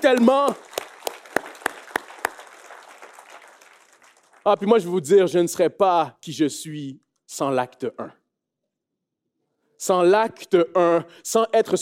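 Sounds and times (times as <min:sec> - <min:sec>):
speech: 0:00.0 - 0:00.7, 0:04.4 - 0:08.2, 0:09.8 - 0:11.8
audience clapping in a steady rhythm: 0:00.0 - 0:05.2.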